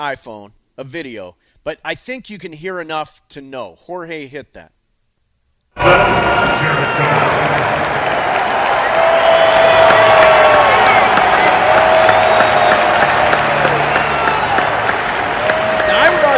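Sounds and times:
speech: 0:00.0 - 0:04.8
stadium crowd cheering: 0:05.8 - 0:16.3.

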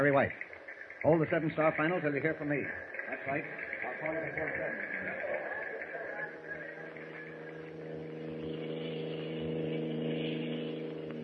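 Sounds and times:
speech: 0:00.0 - 0:05.3
car driving along a road with engine hum: 0:02.8 - 0:11.2.

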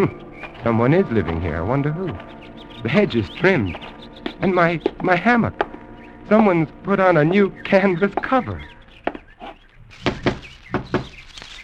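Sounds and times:
speech: 0:00.0 - 0:05.6, 0:06.3 - 0:08.8
faint bird chirping: 0:00.0 - 0:11.6
sharp knocks on a door: 0:10.0 - 0:11.1.

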